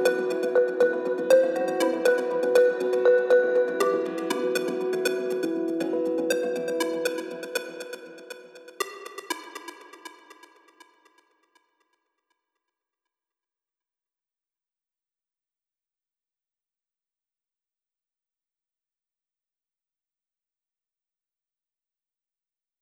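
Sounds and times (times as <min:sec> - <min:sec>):
synthesizer music: 0:00.0 - 0:08.8.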